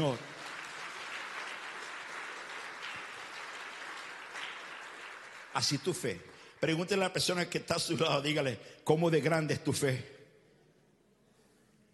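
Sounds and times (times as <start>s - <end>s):
speech: 0.0s - 0.3s, 5.5s - 10.2s
crowd audience applause: 0.0s - 6.4s.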